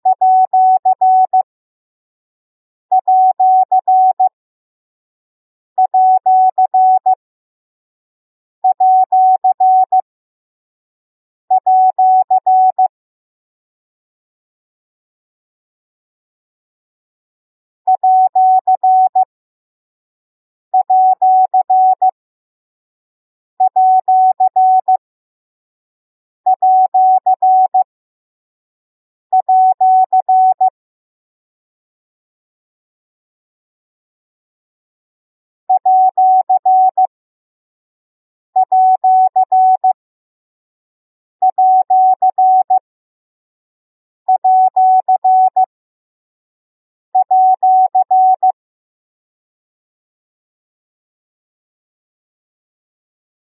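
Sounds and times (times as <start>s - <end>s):
morse code beeps for numbers: 0.1s - 1.5s, 2.9s - 4.3s, 5.8s - 7.2s, 8.7s - 10.0s, 11.5s - 12.9s, 17.9s - 19.3s, 20.8s - 22.2s, 23.6s - 25.0s, 26.5s - 27.9s, 29.4s - 30.7s, 35.7s - 37.1s, 38.6s - 40.0s, 41.4s - 42.8s, 44.4s - 45.7s, 47.2s - 48.6s.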